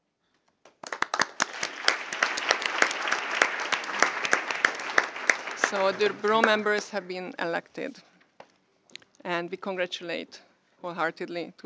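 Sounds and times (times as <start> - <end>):
meeting applause electing Bureau members by acclamation: 0.8 - 7.0
speech: 5.7 - 8.1, 9.3 - 11.6.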